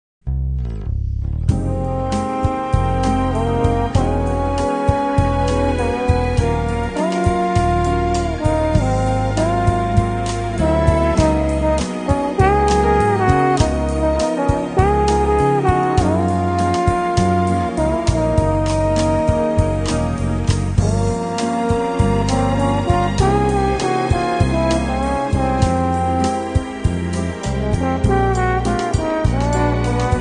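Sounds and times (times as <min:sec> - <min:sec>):
Brazilian jazz: 0:01.3 - 0:30.1.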